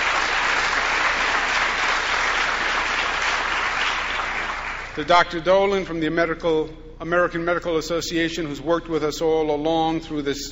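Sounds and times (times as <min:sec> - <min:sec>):
audience applause: 0:00.0 - 0:05.0
speech: 0:05.0 - 0:10.5.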